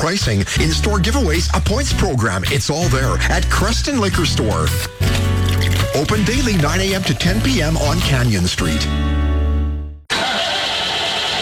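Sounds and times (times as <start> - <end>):
speech: 0.0 - 5.0, 5.7 - 9.2
car engine failing to start: 10.1 - 11.3.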